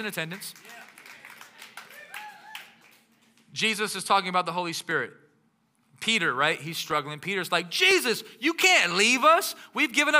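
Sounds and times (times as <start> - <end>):
speech: 0.0 - 0.9, 3.6 - 5.2, 6.0 - 10.1
audience clapping: 0.0 - 3.5.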